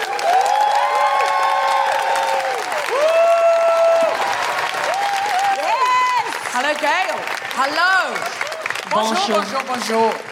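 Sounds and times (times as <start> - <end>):
whoops and cheers: 0.0 - 6.5
audience applause: 0.0 - 10.3
speech: 6.8 - 10.3.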